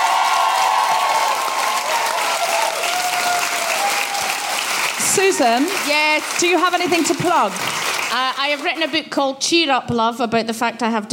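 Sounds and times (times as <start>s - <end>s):
whoops and cheers: 0.0s - 5.9s
crowd applause: 0.0s - 9.1s
speech: 5.2s - 11.1s.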